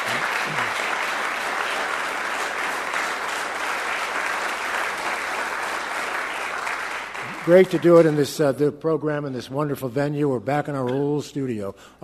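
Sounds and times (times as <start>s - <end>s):
audience applause: 0.0s - 8.3s
speech: 7.4s - 12.0s.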